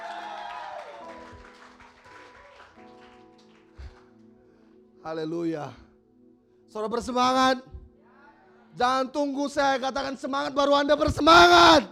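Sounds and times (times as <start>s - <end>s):
audience clapping hands: 0.0s - 4.2s
speech: 5.0s - 5.8s, 6.7s - 7.8s, 8.8s - 11.9s.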